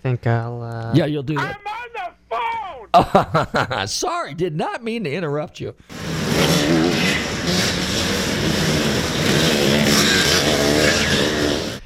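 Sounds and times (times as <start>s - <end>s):
speech: 0.0s - 1.7s, 2.9s - 8.7s
motorcycle engine revving: 5.9s - 11.8s.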